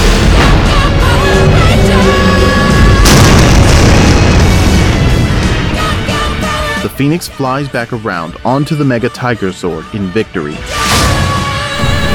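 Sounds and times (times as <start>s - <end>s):
explosion: 0.0s - 1.8s, 2.6s - 6.5s, 11.8s - 12.1s
speech: 7.0s - 11.2s.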